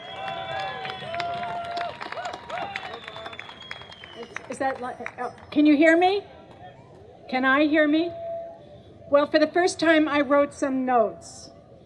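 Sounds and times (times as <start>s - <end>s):
whoops and cheering voices: 0.0s - 4.4s
crowd applauding: 0.0s - 5.5s
speech: 4.5s - 6.4s, 7.3s - 8.2s, 9.1s - 11.4s.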